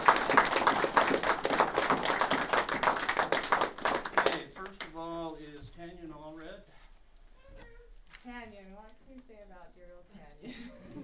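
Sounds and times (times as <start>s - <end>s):
group applauding: 0.0s - 5.3s.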